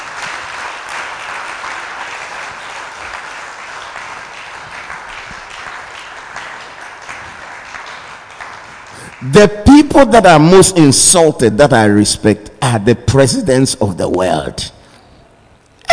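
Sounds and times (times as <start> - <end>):
audience applause: 0.0 - 9.4
speech: 9.2 - 14.8.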